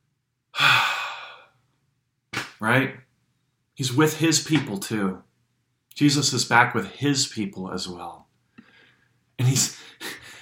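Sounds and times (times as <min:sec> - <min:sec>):
person exhaling in imitation of Jesus breathing on his people: 0:00.6 - 0:01.6
speech: 0:02.6 - 0:03.0, 0:03.8 - 0:05.3, 0:06.0 - 0:08.2, 0:09.4 - 0:10.2.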